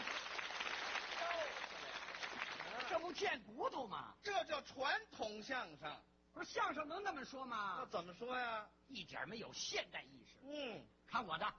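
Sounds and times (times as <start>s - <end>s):
faint audience applause at a traditional Chinese crosstalk comedy show: 0.0s - 3.2s
speech: 3.0s - 11.5s.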